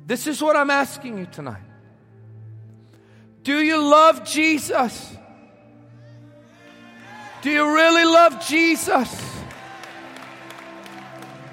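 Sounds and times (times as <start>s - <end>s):
speech: 0.1s - 1.7s, 3.4s - 5.2s, 7.4s - 9.4s
audience clapping: 8.8s - 11.5s.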